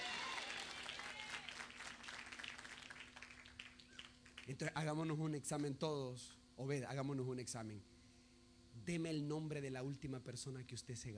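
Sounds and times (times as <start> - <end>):
audience applauding: 0.0 - 4.5
speech: 4.5 - 8.0, 8.7 - 11.1.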